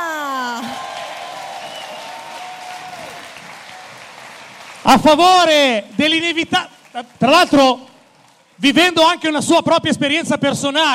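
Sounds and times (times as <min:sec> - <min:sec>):
audience applause: 0:00.6 - 0:09.2
speech: 0:04.8 - 0:07.9, 0:08.6 - 0:10.9.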